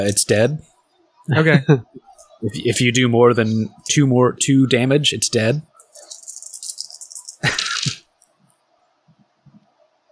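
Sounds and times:
speech: 0:00.0 - 0:00.7, 0:01.3 - 0:05.7
dice rolling: 0:05.8 - 0:08.2.

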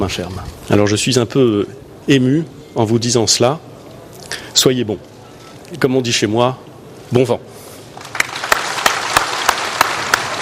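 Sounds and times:
speech: 0:00.0 - 0:03.7, 0:04.3 - 0:05.1, 0:05.7 - 0:07.5
applause and ovation from staff: 0:08.0 - 0:10.4.

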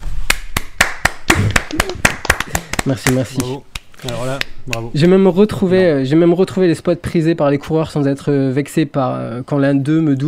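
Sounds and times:
applause: 0:00.3 - 0:04.2
speech: 0:02.8 - 0:10.2.

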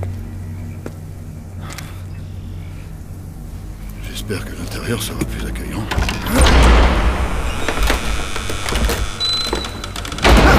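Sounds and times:
speech: 0:04.3 - 0:06.9
heavy door closing by itself: 0:05.8 - 0:10.5.

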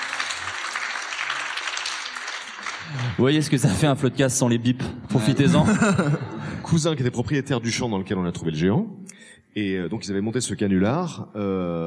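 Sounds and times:
audience applause: 0:00.0 - 0:03.7
speech: 0:02.9 - 0:11.8
laughter: 0:05.2 - 0:06.8.

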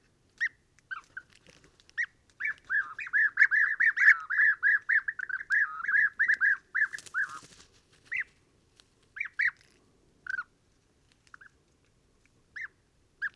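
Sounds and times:
European bee-eaters Merops apiaster calling at a roost in Mauritania: 0:02.0 - 0:08.3.

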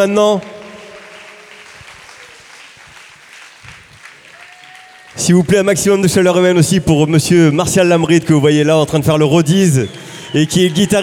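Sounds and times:
speech: 0:00.0 - 0:00.5, 0:05.2 - 0:11.0
concert audience applause: 0:00.0 - 0:06.4, 0:09.3 - 0:11.0.

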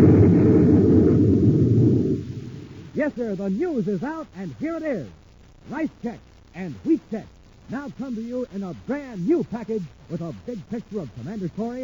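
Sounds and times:
explosion sound effect: 0:00.0 - 0:02.9
speech: 0:03.1 - 0:11.8.

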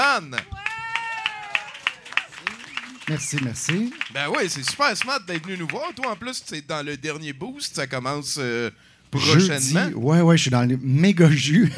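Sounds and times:
rhythmic applause for guest: 0:00.0 - 0:07.0
speech: 0:00.2 - 0:00.5, 0:03.1 - 0:11.7.

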